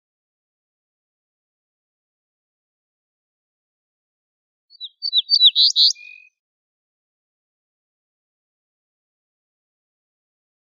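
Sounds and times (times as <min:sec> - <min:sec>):
ortolan bunting phrase: 0:04.7 - 0:06.3.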